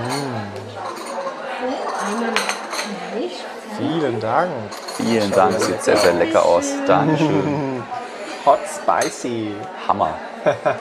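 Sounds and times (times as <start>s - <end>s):
cups and dishes clinking on a table: 0.0s - 3.0s, 3.8s - 7.5s, 8.4s - 9.6s
murmur of voices: 0.0s - 10.7s
speech: 3.9s - 10.7s
laughter: 4.0s - 10.7s.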